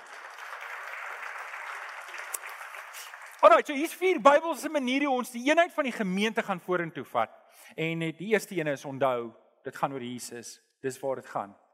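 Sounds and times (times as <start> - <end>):
audience applauding: 0.0 - 4.6
speech: 3.0 - 11.7.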